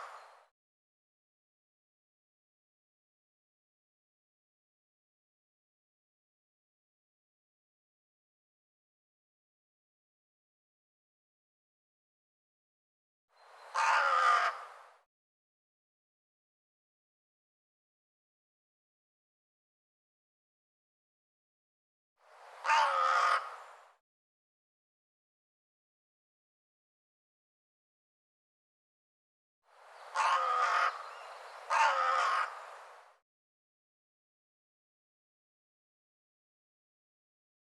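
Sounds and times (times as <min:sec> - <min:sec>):
bird cawing: 0:13.6 - 0:14.8, 0:22.6 - 0:24.0, 0:30.1 - 0:32.8.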